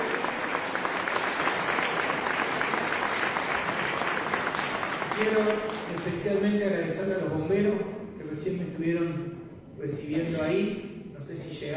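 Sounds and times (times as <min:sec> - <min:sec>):
audience applause at a public event: 0:00.0 - 0:06.3
speech: 0:05.2 - 0:11.7.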